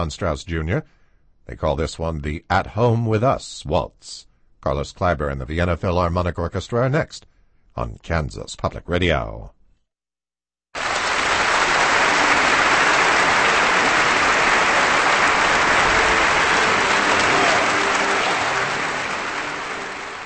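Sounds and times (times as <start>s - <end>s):
speech: 0.0s - 9.6s
concert audience applause after orchestral performance: 10.8s - 20.2s.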